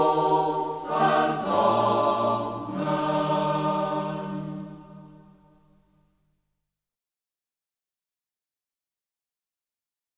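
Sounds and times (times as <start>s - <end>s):
choir in local dialect of Reußmarkt: 0.0s - 5.6s.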